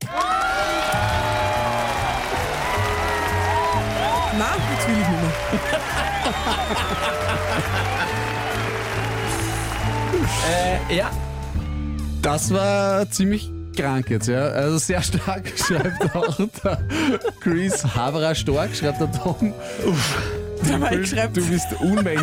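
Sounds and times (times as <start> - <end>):
applause: 0.0 - 11.2
cheering: 0.0 - 11.2
laughter: 4.2 - 8.8, 15.0 - 18.9, 20.6 - 22.2
speech: 4.4 - 8.0, 10.3 - 11.3, 12.2 - 22.2.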